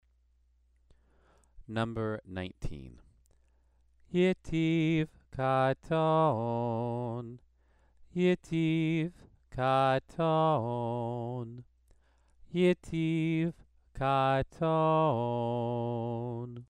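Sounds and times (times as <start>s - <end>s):
Torah trope cantillation exercise: 4.1s - 7.4s, 8.2s - 11.6s, 12.6s - 16.6s.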